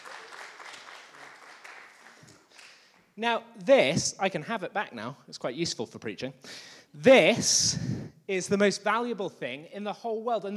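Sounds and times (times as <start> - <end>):
round of applause: 0.0 - 3.1
speech: 3.2 - 10.5.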